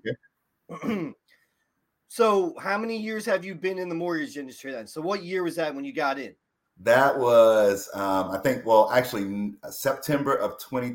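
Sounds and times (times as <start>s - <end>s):
speech: 0.0s - 1.2s, 2.1s - 10.9s
person coughing: 0.7s - 1.2s
rasping throat clearing: 0.7s - 1.3s.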